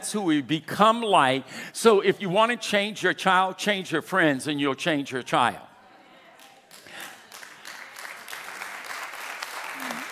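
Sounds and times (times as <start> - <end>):
speech: 0.0 - 5.7
audience clapping: 6.4 - 10.1.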